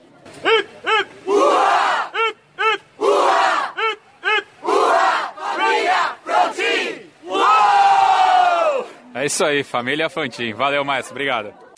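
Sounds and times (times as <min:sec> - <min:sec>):
marching band members shouting a battle cry in unison: 0:00.4 - 0:08.9
speech: 0:09.2 - 0:11.6.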